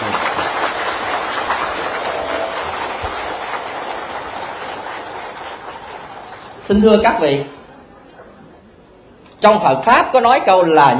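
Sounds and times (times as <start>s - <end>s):
assembly giving a round of applause: 0.0s - 6.7s
speech: 6.7s - 7.6s, 9.4s - 10.9s.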